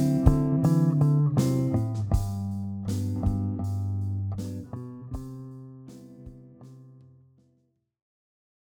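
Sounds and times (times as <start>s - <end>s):
Am D7 G Maj7 C Maj7 backing track music: 0.0s - 3.6s.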